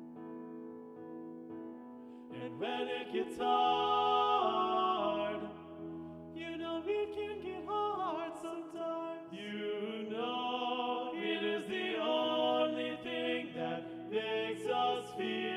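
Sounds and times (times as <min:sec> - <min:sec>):
descant singing: 0:02.4 - 0:05.6, 0:06.4 - 0:15.5.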